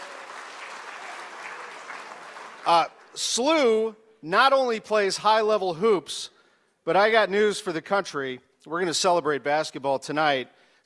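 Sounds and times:
audience round of applause: 0.0 - 3.2
speech: 2.6 - 10.8.

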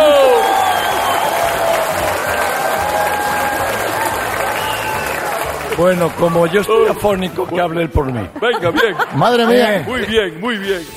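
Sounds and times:
audience applause for the mayor of Vigo: 0.0 - 6.8
speech: 5.8 - 10.9
laughter: 8.0 - 10.2.

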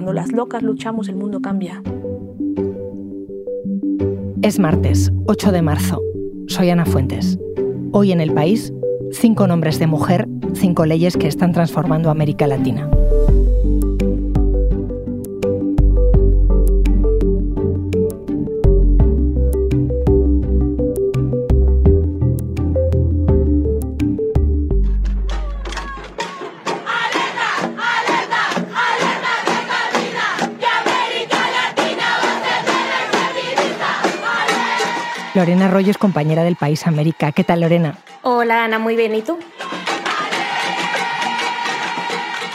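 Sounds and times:
speech: 0.0 - 2.0, 4.4 - 13.2, 35.4 - 39.6
bold bass-heavy musical passage: 0.0 - 26.2
people clapping: 24.9 - 42.5
crowd of women chanting protest slogan: 25.4 - 36.0, 39.3 - 42.5.

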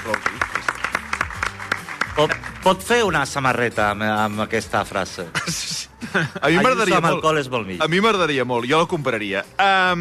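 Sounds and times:
audience at a live talk clapping: 0.0 - 3.2
speech: 2.2 - 10.0.

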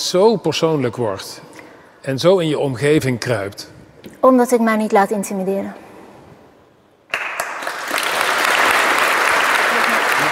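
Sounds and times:
speech: 0.1 - 5.8
audience applause: 7.1 - 10.3.

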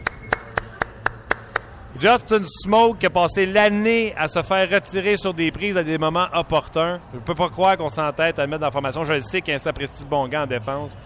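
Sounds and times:
hand claps: 0.0 - 1.8
speech: 2.0 - 11.0.

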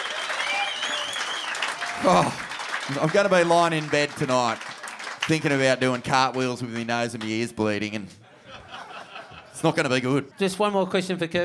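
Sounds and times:
round of applause: 0.0 - 7.3
speech: 2.0 - 4.7, 5.3 - 8.2, 9.6 - 11.4
laughter: 8.2 - 10.4.

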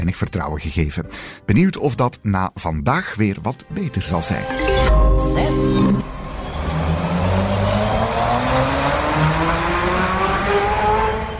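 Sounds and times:
speech: 0.0 - 6.2
Tesla Semi electric truck accelerating: 6.0 - 11.3.

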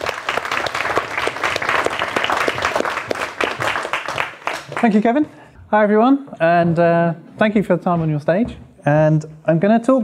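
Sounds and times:
audience clapping: 0.0 - 5.3
speech: 4.8 - 10.0.

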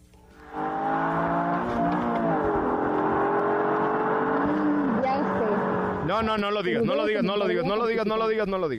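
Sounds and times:
Nissan Micra small car engine revving: 0.4 - 6.2
speech: 6.1 - 8.7.

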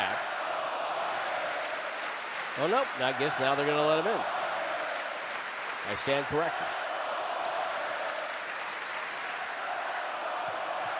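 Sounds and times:
arena crowd chanting at Chase: 0.0 - 2.4, 4.2 - 10.9
speech: 2.6 - 4.4, 5.8 - 6.8.

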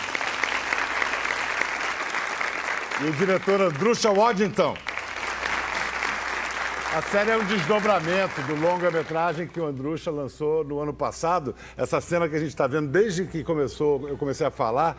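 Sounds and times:
audience applause: 0.0 - 9.9
speech: 3.0 - 4.9, 6.9 - 14.9.

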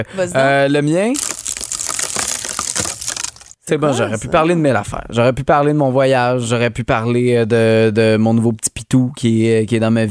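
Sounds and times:
speech: 0.0 - 1.4, 3.7 - 10.0
wooden bed base cracking: 1.2 - 3.6.

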